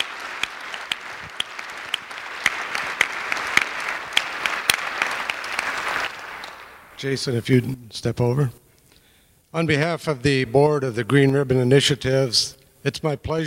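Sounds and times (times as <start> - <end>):
audience applause: 0.0 - 7.0
speech: 7.0 - 8.6, 9.5 - 13.4.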